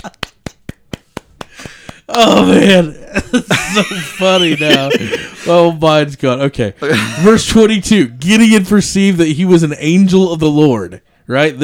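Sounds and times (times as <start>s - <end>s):
soft golf clap: 0.0s - 2.2s
laughter: 0.0s - 5.8s, 6.8s - 7.6s
speech: 2.1s - 11.6s.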